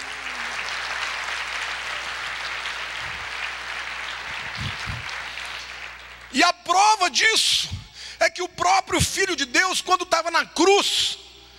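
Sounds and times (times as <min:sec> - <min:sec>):
audience applauding: 0:00.0 - 0:06.4
speech: 0:06.3 - 0:11.2.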